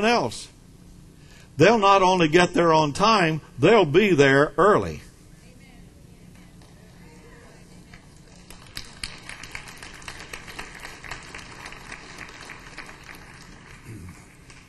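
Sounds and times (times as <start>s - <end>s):
speech: 0.0s - 0.6s, 1.6s - 5.1s
weak applause from audience: 8.7s - 14.6s.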